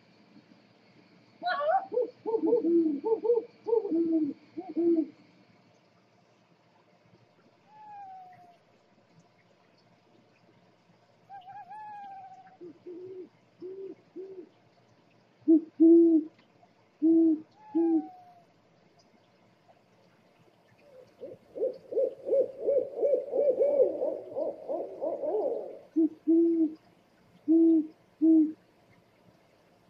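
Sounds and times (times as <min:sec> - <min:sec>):
scops owl hooting: 0:01.4 - 0:05.2, 0:07.7 - 0:08.6, 0:11.3 - 0:14.5, 0:17.0 - 0:18.4, 0:20.9 - 0:26.8, 0:27.4 - 0:28.6.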